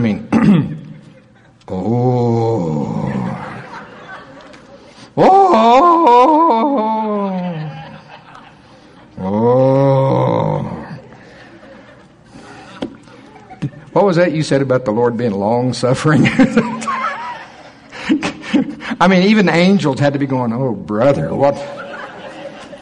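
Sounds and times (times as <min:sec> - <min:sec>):
deep drawn-out vocal groaning in intercessional prayer: 0:01.7 - 0:03.8, 0:05.2 - 0:08.0, 0:09.2 - 0:11.1
laughter: 0:02.8 - 0:14.0, 0:16.2 - 0:19.0, 0:21.5 - 0:22.8
speech: 0:14.1 - 0:17.2, 0:19.0 - 0:21.8.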